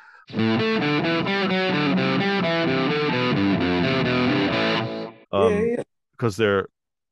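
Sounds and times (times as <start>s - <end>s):
distorted rock guitar riffs: 0.3s - 5.3s
speech: 6.2s - 6.8s.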